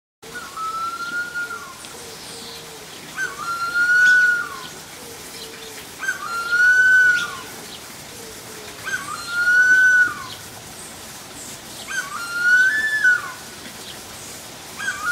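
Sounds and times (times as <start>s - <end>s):
Harpy eagle giving drawn-out whistled wails: 0.4s - 1.8s, 3.2s - 4.7s, 6.0s - 7.5s, 8.8s - 10.4s, 11.9s - 13.4s, 14.8s - 15.1s.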